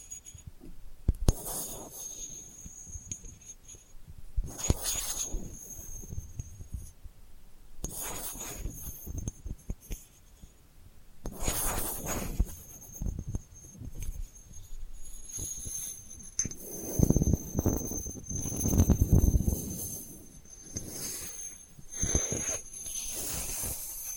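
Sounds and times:
delicate scratching and rubbing: 0:01.3 - 0:06.9, 0:07.8 - 0:10.5, 0:11.3 - 0:24.1
thin high whine: 0:01.3 - 0:07.0, 0:11.2 - 0:24.1.

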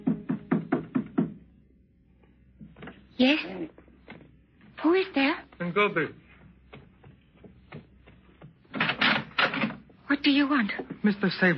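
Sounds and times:
knock on a door: 0:00.0 - 0:01.4
speech: 0:03.2 - 0:03.8, 0:04.8 - 0:06.2, 0:10.2 - 0:11.5.

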